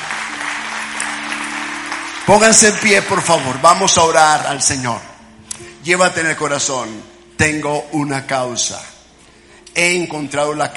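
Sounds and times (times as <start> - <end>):
audience applause: 0.0 - 3.7
speech: 2.3 - 5.1, 5.8 - 8.9, 9.8 - 10.7.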